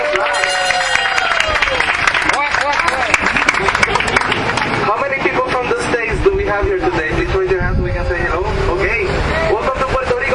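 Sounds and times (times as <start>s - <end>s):
crowd applause for a club captain: 0.0s - 5.0s
voices calling and talking: 1.4s - 10.3s.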